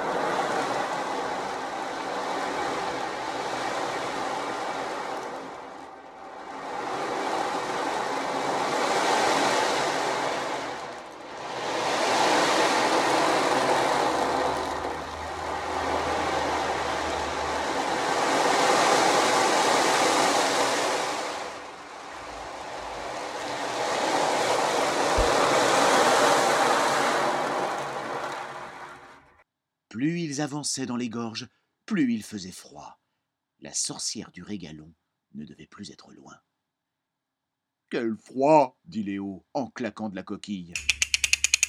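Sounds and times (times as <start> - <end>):
rushing torrent of rainwater: 0.0 - 29.2
speech: 30.0 - 33.0, 33.6 - 36.5, 37.9 - 40.9.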